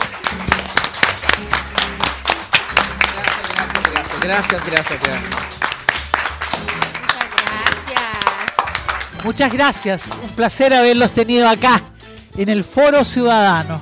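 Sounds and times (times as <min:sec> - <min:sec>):
audience applause: 0:00.0 - 0:10.4
speech: 0:04.2 - 0:05.5, 0:09.2 - 0:13.7.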